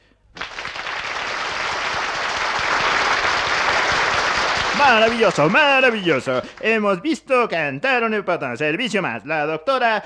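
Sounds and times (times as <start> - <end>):
audience applause: 0.4 - 6.8
speech: 4.8 - 10.0.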